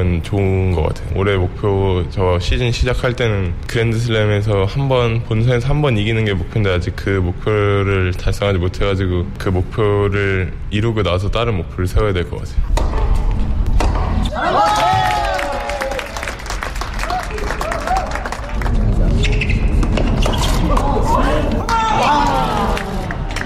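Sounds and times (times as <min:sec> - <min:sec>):
speech: 0:00.2 - 0:13.0
tennis match crowd cheering and groaning: 0:14.0 - 0:16.4, 0:17.0 - 0:23.4.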